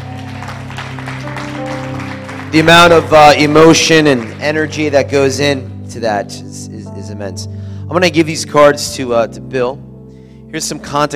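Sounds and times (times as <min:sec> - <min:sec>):
audience applause: 0:00.0 - 0:04.8
speech: 0:02.5 - 0:09.8, 0:10.5 - 0:11.1.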